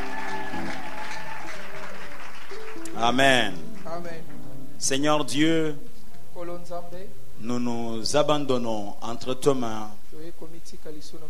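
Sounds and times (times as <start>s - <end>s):
church congregation clapping and acclaiming the Lord: 0.0s - 4.4s
sustained musical tones: 2.2s - 6.0s
speech: 3.0s - 10.0s, 10.6s - 11.2s.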